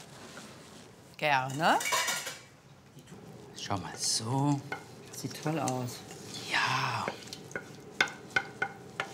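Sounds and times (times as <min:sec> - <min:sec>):
speech: 0:01.2 - 0:02.0, 0:03.6 - 0:07.2
wooden cooking spoon pressing and stirring tomato sauce: 0:04.7 - 0:09.1.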